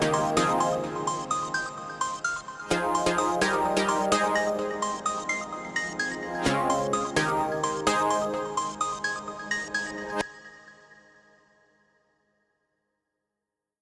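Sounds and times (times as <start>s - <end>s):
instrumental music: 0.0s - 10.2s.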